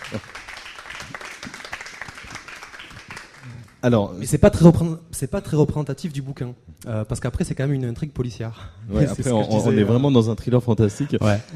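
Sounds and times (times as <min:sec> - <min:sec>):
audience applause: 0:00.0 - 0:03.8
speech: 0:00.1 - 0:00.3, 0:03.8 - 0:11.5.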